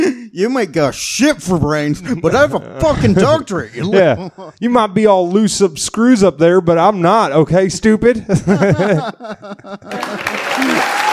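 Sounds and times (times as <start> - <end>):
speech: 0.4 - 11.1
laughter: 2.0 - 4.7, 8.3 - 11.1
crowd clapping: 9.9 - 11.1.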